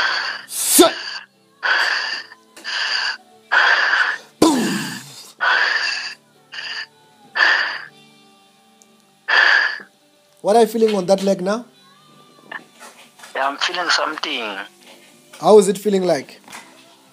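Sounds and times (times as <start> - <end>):
heavy breathing through the mouth during a faith-healing prayer session: 0.0 - 7.9, 9.3 - 9.9
speech: 10.4 - 11.7, 13.4 - 14.8, 15.4 - 16.4.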